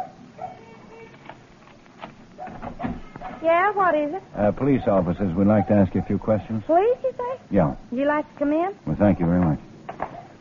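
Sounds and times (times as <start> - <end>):
dog barking and yipping at home: 0.0 - 0.7, 2.4 - 3.4, 5.5 - 6.3, 10.0 - 10.3
low hum: 0.0 - 10.3
speech: 3.4 - 9.7.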